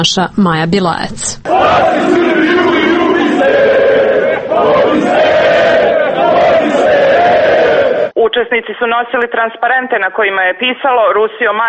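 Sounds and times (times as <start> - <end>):
speech: 0.0 - 2.7, 8.4 - 11.6
crowd at a large outdoor rally: 1.5 - 8.2.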